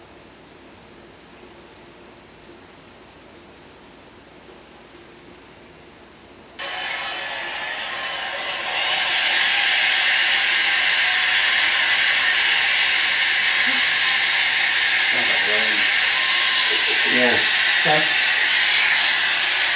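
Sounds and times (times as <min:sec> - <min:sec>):
stadium crowd cheering through small phone speaker: 0:06.6 - 0:19.7.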